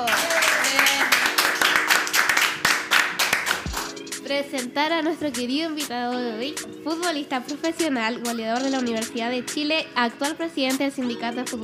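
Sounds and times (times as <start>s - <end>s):
audience applause: 0.0s - 3.9s
speech: 4.3s - 11.6s.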